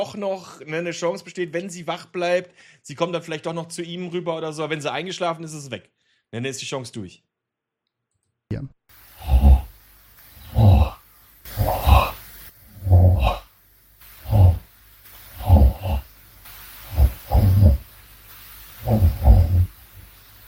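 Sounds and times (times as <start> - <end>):
speech: 0.0 - 7.3, 8.5 - 9.4
man snoring: 9.2 - 9.8, 10.4 - 13.5, 14.2 - 14.7, 15.4 - 16.1, 16.9 - 17.9, 18.8 - 19.8.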